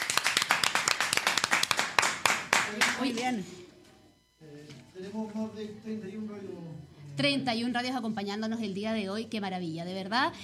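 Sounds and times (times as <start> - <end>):
hand clapping applause for partner radio stations: 0.0 - 3.4
speech: 3.0 - 3.6, 4.4 - 10.4.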